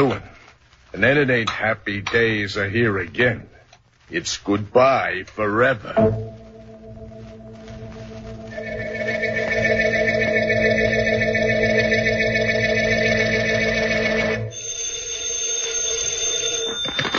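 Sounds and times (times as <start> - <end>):
speech: 0.0 - 0.3, 0.9 - 6.4
old telephone bell ringing: 8.5 - 17.1.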